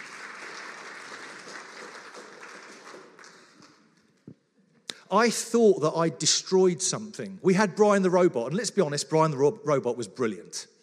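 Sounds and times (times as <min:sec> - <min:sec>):
audience applause: 0:00.0 - 0:03.9
speech: 0:05.1 - 0:10.8.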